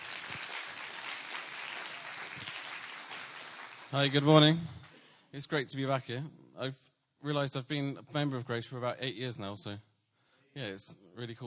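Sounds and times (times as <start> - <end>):
audience applause: 0.0 - 5.0
speech: 3.9 - 9.9, 10.6 - 11.4.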